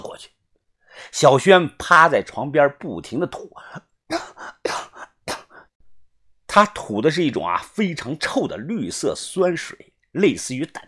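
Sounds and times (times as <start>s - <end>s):
speech: 1.1s - 4.8s, 6.6s - 10.8s
coughing: 3.7s - 5.7s.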